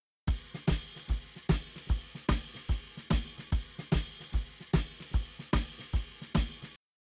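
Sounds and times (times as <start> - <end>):
shuffle drums: 0.3 - 6.8.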